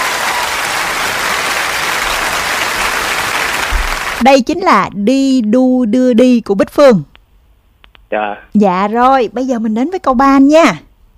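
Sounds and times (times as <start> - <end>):
applause: 0.0 - 4.2
speech: 4.2 - 7.1, 8.1 - 10.9.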